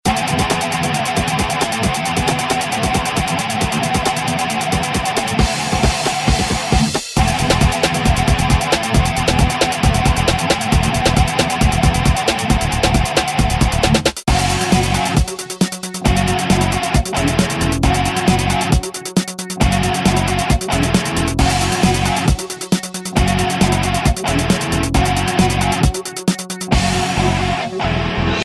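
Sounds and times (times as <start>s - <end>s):
music loop: 0.1s - 28.1s.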